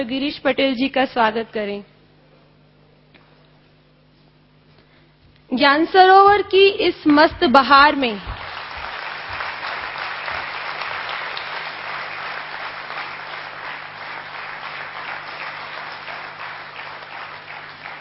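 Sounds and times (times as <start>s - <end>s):
speech: 0.0s - 1.9s, 5.6s - 8.3s
audience applause at Gyan Sarovar welcoming a guest: 8.1s - 17.9s.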